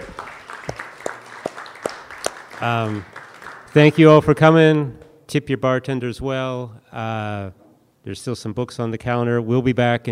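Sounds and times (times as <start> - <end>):
scattered applause: 0.0 - 4.0
speech: 2.6 - 10.1.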